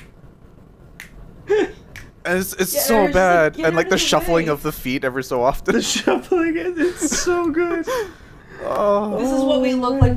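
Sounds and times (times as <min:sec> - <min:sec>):
finger snaps imitating a clap: 0:00.0 - 0:00.2, 0:00.9 - 0:02.2
speech: 0:02.2 - 0:10.1.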